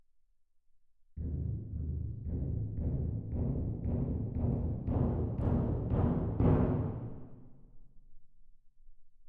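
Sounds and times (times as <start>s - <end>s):
percussion: 1.2s - 7.3s.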